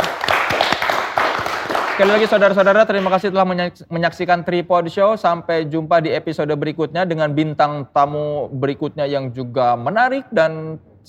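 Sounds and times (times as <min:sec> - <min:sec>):
hands clapping: 0:00.0 - 0:03.3
speech: 0:02.0 - 0:10.9.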